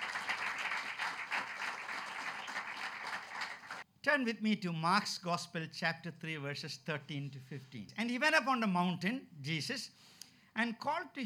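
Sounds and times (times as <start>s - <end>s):
audience clapping: 0.0s - 3.8s
speech: 4.0s - 11.2s.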